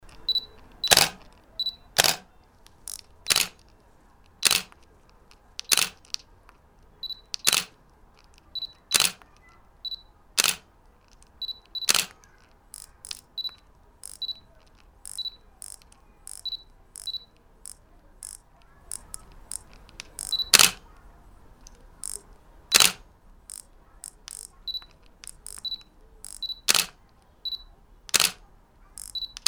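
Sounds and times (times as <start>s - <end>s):
camera shutter firing continuously: 0.2s - 3.6s, 4.4s - 4.8s, 5.6s - 6.2s, 7.0s - 7.8s, 8.6s - 9.3s, 9.9s - 10.7s, 11.4s - 20.8s, 22.0s - 28.4s, 29.0s - 29.4s.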